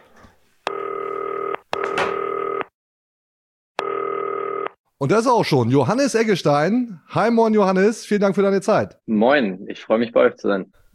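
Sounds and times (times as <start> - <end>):
telephone ringing tone: 0.7 - 2.7, 3.8 - 4.8
speech: 5.0 - 10.9.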